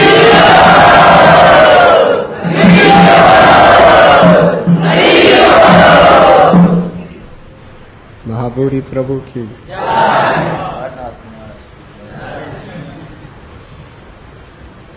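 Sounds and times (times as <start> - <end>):
crowd cheering to welcome a speaker at a devotional gathering: 0.0 - 7.0, 9.7 - 11.0
speech: 8.7 - 10.8.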